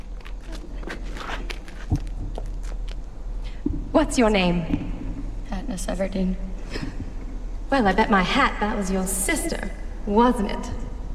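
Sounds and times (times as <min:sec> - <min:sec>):
footsteps climbing stone steps up to a stage: 0:00.0 - 0:03.9
speech: 0:04.0 - 0:04.9, 0:05.8 - 0:06.8, 0:07.7 - 0:10.8.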